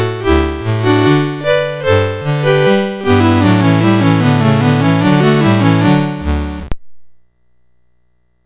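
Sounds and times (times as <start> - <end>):
chorale on MOS6581R4 chip: 0.0 - 6.7.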